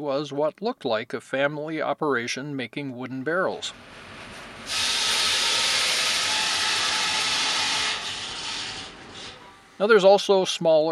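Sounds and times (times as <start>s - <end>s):
speech: 0.0s - 4.1s, 4.7s - 4.9s, 9.8s - 10.9s
steam power plant engine hissing steam: 3.7s - 9.9s.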